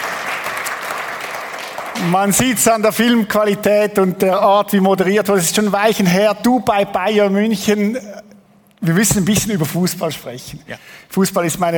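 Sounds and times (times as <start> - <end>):
studio audience applause: 0.0 - 2.0
speech: 2.0 - 11.7.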